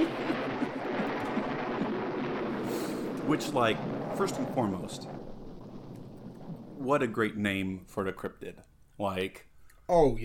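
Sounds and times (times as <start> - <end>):
scary thunder sound effect: 0.0 - 8.1
speech: 3.3 - 5.2, 6.8 - 10.2.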